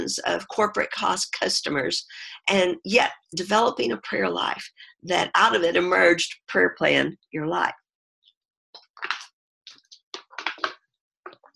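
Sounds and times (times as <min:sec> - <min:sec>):
speech: 0:00.0 - 0:07.8
water bottle being handled: 0:08.8 - 0:11.4.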